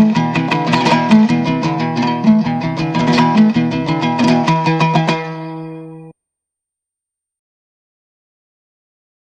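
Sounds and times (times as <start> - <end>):
Turkmen kuii folk instrumental piece: 0.0 - 6.1.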